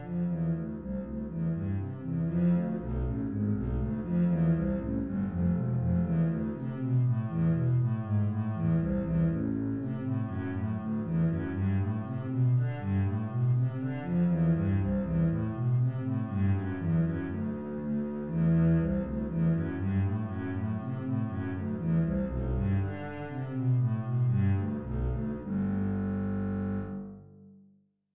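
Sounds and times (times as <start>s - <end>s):
bass etude: 0.0s - 27.7s.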